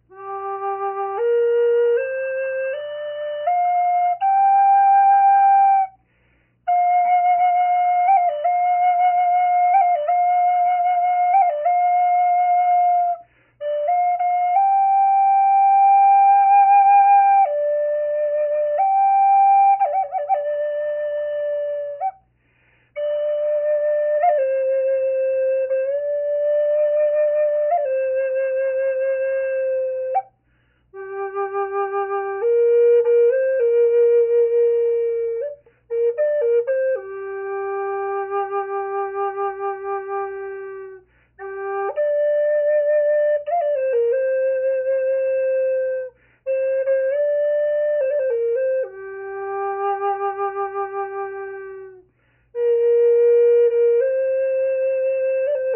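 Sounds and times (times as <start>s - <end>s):
natural flute: 0.0s - 55.7s.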